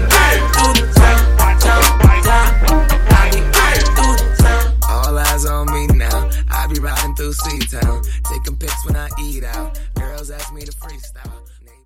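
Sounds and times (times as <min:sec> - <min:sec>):
hip hop rap record scratching: 0:00.0 - 0:11.4.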